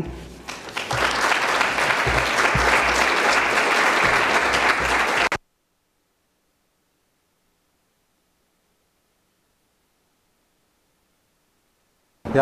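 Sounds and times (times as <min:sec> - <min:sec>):
audience applause welcoming the speaker: 0:00.4 - 0:05.4.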